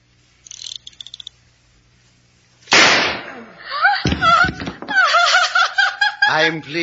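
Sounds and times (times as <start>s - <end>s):
gunshot as a man shoots himself: 2.7s - 3.4s
laughter: 3.7s - 6.8s.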